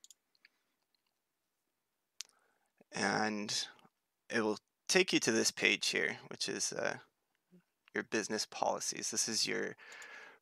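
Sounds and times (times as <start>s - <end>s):
computer mouse click on a link: 0.0s - 1.2s
speech: 2.9s - 7.1s, 7.9s - 10.1s.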